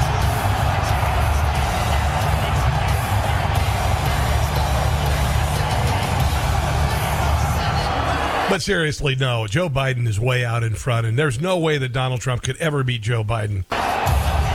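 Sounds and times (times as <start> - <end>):
rock music blaring: 0.0 - 8.5, 13.7 - 14.5
arena crowd cheering: 0.0 - 9.2, 13.7 - 14.5
speech: 8.5 - 13.8.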